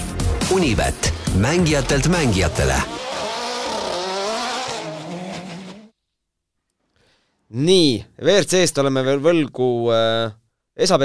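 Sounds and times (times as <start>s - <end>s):
speech: 0.5s - 3.0s, 7.5s - 11.0s
fast car roaring past at high speed: 1.9s - 5.9s.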